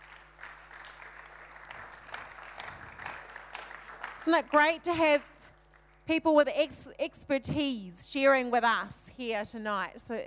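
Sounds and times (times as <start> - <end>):
audience applause: 0.0 - 4.8
speech: 4.2 - 5.3, 6.1 - 10.2.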